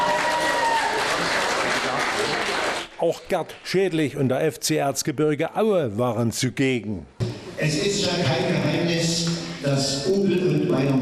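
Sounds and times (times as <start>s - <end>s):
fans applauding the FC Bayern München Amateure team delegation: 0.0s - 3.7s
speech: 3.0s - 11.0s.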